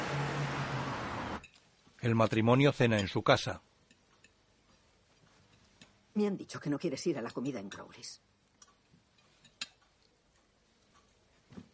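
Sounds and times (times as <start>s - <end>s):
car driving away: 0.0s - 1.4s
speech: 2.0s - 3.7s, 6.2s - 8.3s.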